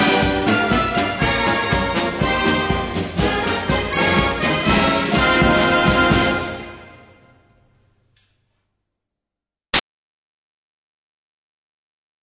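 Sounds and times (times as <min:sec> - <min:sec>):
brass bells: 0:00.0 - 0:07.4.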